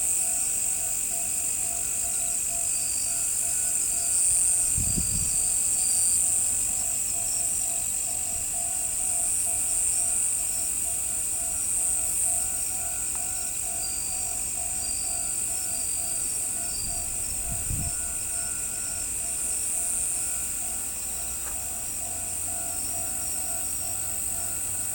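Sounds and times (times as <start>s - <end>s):
crickets trilling: 0.0s - 24.9s.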